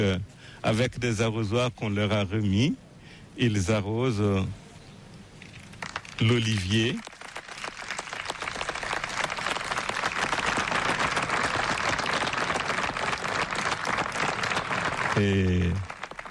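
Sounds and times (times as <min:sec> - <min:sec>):
speech: 0:00.0 - 0:02.8, 0:03.4 - 0:04.6, 0:06.2 - 0:07.1, 0:15.2 - 0:15.9
staff applauding: 0:05.8 - 0:16.2.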